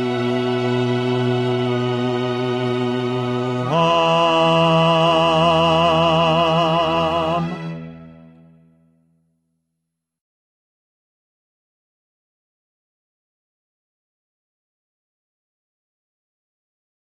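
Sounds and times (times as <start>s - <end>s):
bass voice part singing a Latin choral piece: 0.0s - 8.2s.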